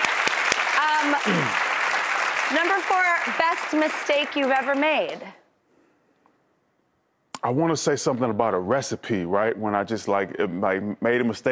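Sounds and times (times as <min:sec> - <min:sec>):
applause: 0:00.0 - 0:05.4
speech: 0:01.0 - 0:01.7, 0:02.5 - 0:05.4, 0:07.4 - 0:11.5.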